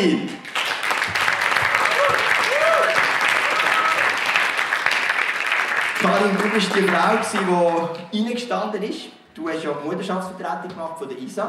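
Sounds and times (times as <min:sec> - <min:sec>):
speech: 0:00.0 - 0:00.4, 0:06.2 - 0:11.4
audience applause: 0:00.4 - 0:08.0
cheers and whistles: 0:01.6 - 0:04.5.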